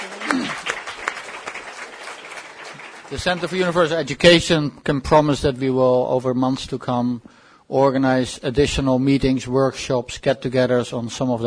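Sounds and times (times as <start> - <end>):
audience applause for the speaker and panel at a policy discussion: 0.0 - 3.9
speech: 3.1 - 11.4.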